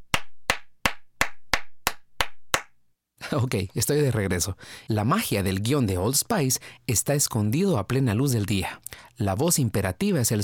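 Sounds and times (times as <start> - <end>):
one person clapping hands: 0.0 - 2.8
speech: 3.3 - 10.4.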